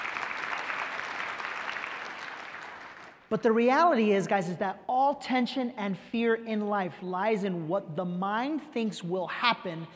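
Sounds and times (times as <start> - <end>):
audience applause for a man at a talk: 0.0 - 3.2
speech: 3.3 - 9.9.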